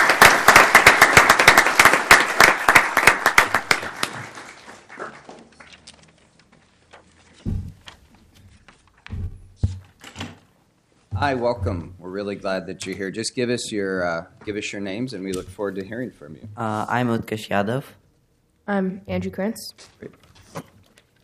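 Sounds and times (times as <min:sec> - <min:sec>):
round of applause: 0:00.0 - 0:05.8
speech: 0:11.2 - 0:18.0, 0:18.7 - 0:20.7.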